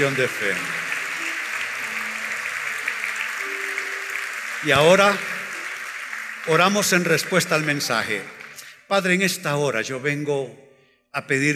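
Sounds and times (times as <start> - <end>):
speech: 0.0 - 0.8, 4.6 - 5.3, 6.4 - 11.5
audience applause: 0.0 - 8.8.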